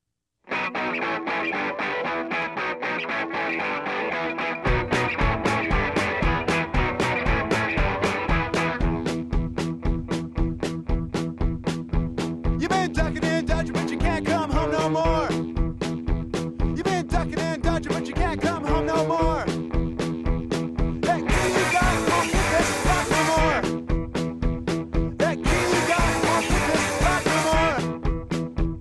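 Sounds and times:
rapidly strummed fuzzy electric guitar: 0:00.5 - 0:28.7
pounding drums: 0:04.7 - 0:28.7
shouted vocals: 0:21.1 - 0:23.6, 0:25.2 - 0:27.8.

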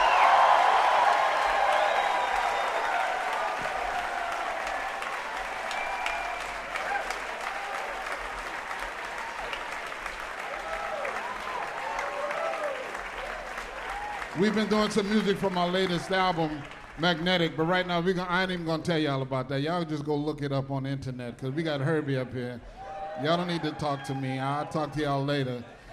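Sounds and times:
whoops: 0:00.0 - 0:08.2, 0:09.0 - 0:14.4
sustained audience applause: 0:00.0 - 0:18.0
speech: 0:14.4 - 0:25.8.

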